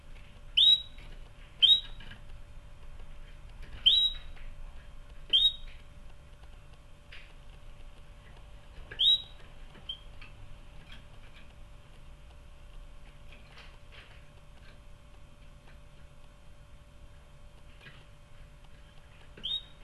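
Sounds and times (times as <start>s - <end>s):
canary whistling: 0.6s - 1.0s, 1.6s - 2.1s, 3.8s - 4.4s, 5.3s - 5.8s, 8.9s - 10.1s, 19.4s - 19.8s.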